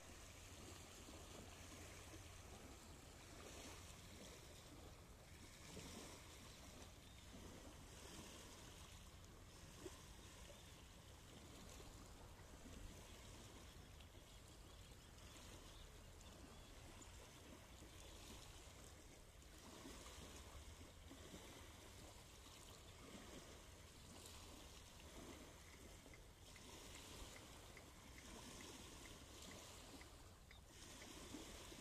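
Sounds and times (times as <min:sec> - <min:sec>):
water lapping: 0:00.0 - 0:31.7.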